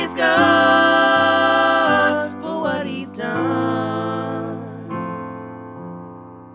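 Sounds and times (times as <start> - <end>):
full choir singing: 0.0 - 5.0.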